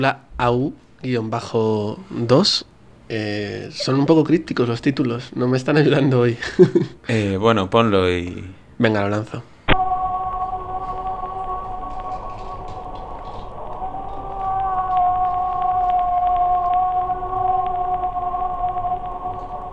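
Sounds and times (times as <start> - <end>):
speech: 0.0 - 9.5
hiss: 0.0 - 19.7
laughter: 6.3 - 7.0
humpback whale singing: 9.7 - 19.7.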